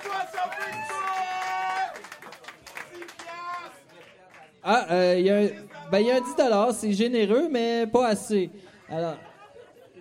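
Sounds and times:
loud high-pitched cheers and whoops: 0.0 - 2.1
audience scattered clapping: 0.0 - 4.7
speech: 4.7 - 9.3
laughter: 8.8 - 9.9.

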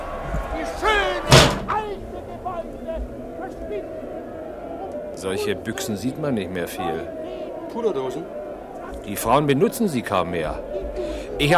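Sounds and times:
crowd murmur: 0.0 - 11.5
window slamming shut: 1.3 - 1.7
speech: 5.2 - 8.4, 9.0 - 11.5.

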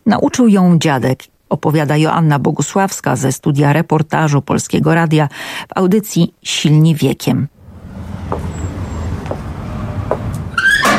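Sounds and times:
speech: 0.1 - 7.6
low rumble: 7.5 - 10.6
soft knocks: 7.7 - 10.6
squeaky door creaking open: 7.8 - 10.9.

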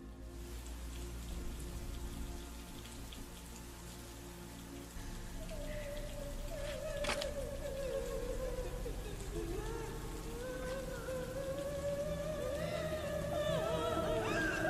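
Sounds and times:
rain: 0.0 - 14.6
wind: 0.0 - 14.6.

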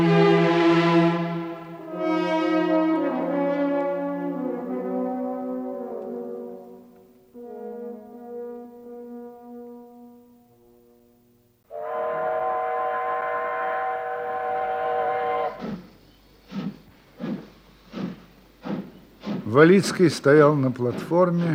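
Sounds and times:
whistle of a departing train at a station platform: 0.1 - 6.8, 7.4 - 10.9, 11.7 - 15.9
speech: 19.6 - 21.5.

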